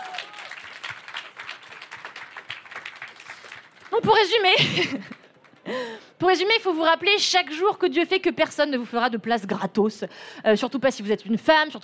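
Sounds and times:
audience applause: 0:00.0 - 0:05.7
speech: 0:04.0 - 0:11.8.

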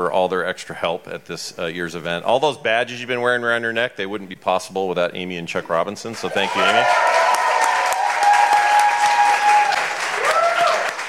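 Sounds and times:
speech: 0:00.0 - 0:07.2
audience applause: 0:06.2 - 0:11.0.

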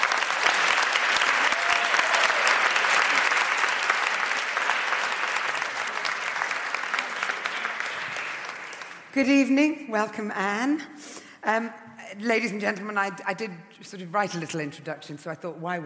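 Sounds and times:
audience applause welcoming two authors on stage at a book event: 0:00.0 - 0:09.1
speech: 0:09.2 - 0:15.8.

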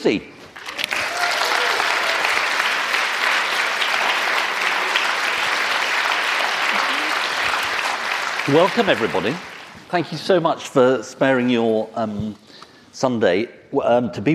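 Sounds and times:
speech: 0:00.0 - 0:00.4, 0:08.5 - 0:14.3
audience applause: 0:00.6 - 0:10.0.

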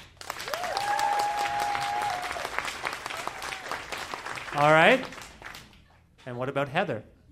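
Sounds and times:
audience applause: 0:00.0 - 0:05.7
speech: 0:04.6 - 0:05.2, 0:06.3 - 0:07.2.

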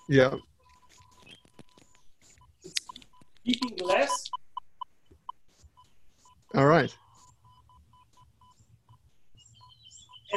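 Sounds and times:
rapid electronic beeping from a radiation exposure meter: 0:00.0 - 0:10.3
speech: 0:00.1 - 0:00.5, 0:03.4 - 0:04.4, 0:06.5 - 0:07.0
crackly noise bursts: 0:00.4 - 0:07.2.

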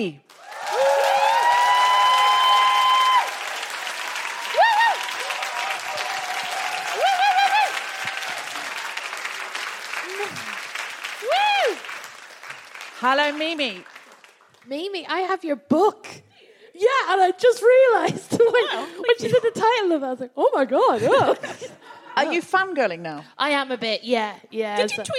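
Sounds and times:
speech: 0:00.0 - 0:00.2, 0:13.0 - 0:13.9, 0:14.6 - 0:16.2, 0:16.9 - 0:25.1
audience applause welcoming a guest: 0:00.3 - 0:14.7
crowd shouting and whooping: 0:00.4 - 0:12.1.

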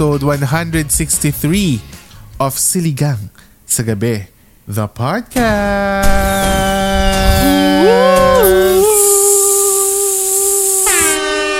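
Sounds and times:
speech: 0:00.0 - 0:06.6
air horn blast: 0:05.5 - 0:11.5.

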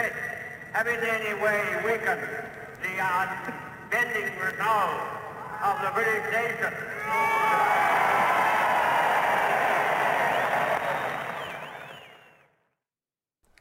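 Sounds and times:
speech: 0:00.0 - 0:08.0
large crowd cheering during a historic speech: 0:07.0 - 0:12.5
shrill whistles: 0:10.1 - 0:12.5.

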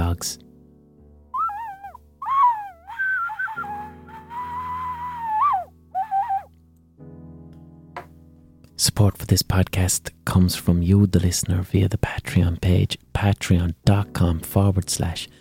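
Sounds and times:
speech: 0:00.2 - 0:00.5, 0:08.8 - 0:15.3
high-pitched ocarina: 0:01.4 - 0:06.5.

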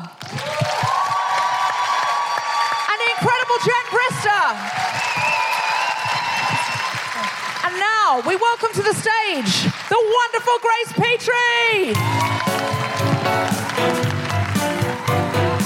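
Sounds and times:
crowd applause: 0:00.0 - 0:10.1, 0:11.9 - 0:15.6
crowd cheering and whooping: 0:00.2 - 0:07.8, 0:11.9 - 0:15.6
speech: 0:04.4 - 0:04.9, 0:07.7 - 0:12.8.

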